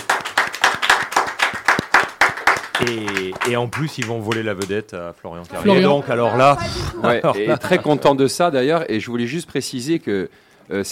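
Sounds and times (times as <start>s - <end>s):
audience applauding: 0.0s - 4.7s
speech: 2.8s - 10.9s
laughter: 5.8s - 8.2s.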